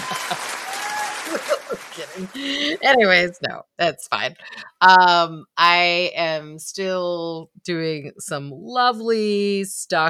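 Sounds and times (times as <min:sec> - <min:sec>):
single person clapping hands: 0:00.0 - 0:03.0
laughter: 0:00.0 - 0:03.2
speech: 0:02.2 - 0:10.0.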